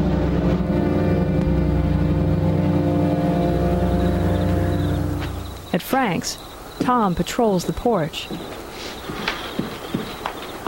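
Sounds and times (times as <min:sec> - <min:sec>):
car engine rumbling as it drives away: 0:00.0 - 0:05.8
speech: 0:05.8 - 0:09.0.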